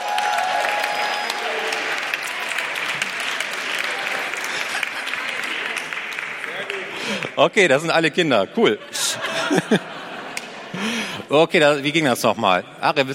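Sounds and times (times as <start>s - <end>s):
audience applause for children: 0.0s - 7.4s
laughter: 3.9s - 5.9s, 8.2s - 11.3s
speech: 7.4s - 10.0s, 11.3s - 13.1s.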